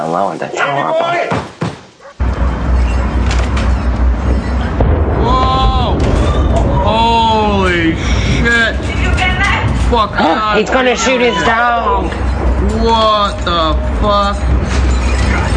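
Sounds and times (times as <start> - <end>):
speech: 0.0 - 1.6, 9.9 - 14.5
gas station explosion in China played from a video: 2.2 - 15.5
excited voices shouting: 5.2 - 7.7, 10.2 - 14.4.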